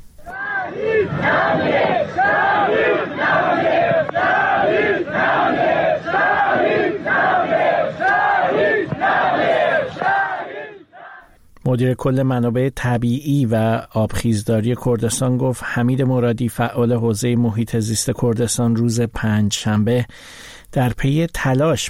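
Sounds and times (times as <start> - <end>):
funeral crowd chanting a slogan: 0.2 - 11.3
speech: 11.7 - 21.8.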